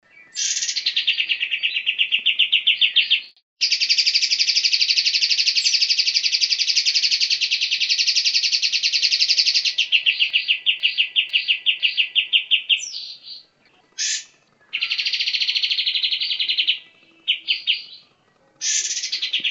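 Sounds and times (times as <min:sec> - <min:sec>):
Olive-winged Bulbul singing chattering trills: 0:00.4 - 0:19.4.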